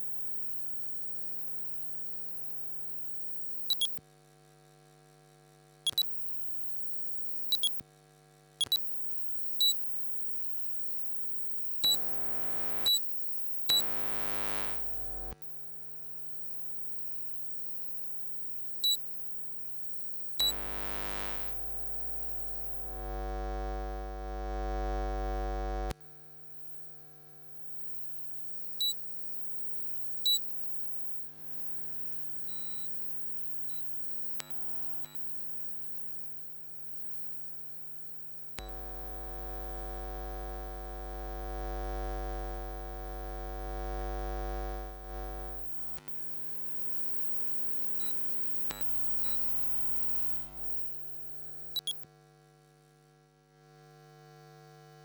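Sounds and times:
electromagnetic field electronic buzz: 3.6 - 4.0, 11.8 - 15.4, 20.4 - 26.0, 38.6 - 52.1.

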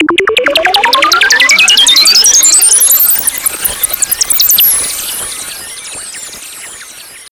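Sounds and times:
sound effect sweep: 0.0 - 7.3.

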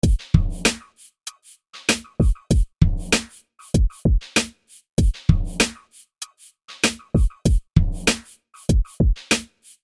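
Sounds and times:
music beat: 0.0 - 9.8.

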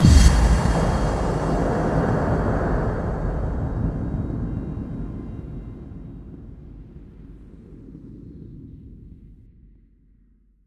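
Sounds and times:
effect kick drum hits: 0.0 - 5.4.

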